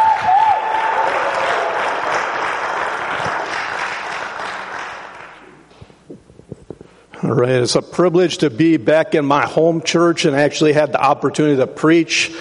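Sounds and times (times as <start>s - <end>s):
audience applause: 0.0s - 5.5s
speech: 7.3s - 12.3s.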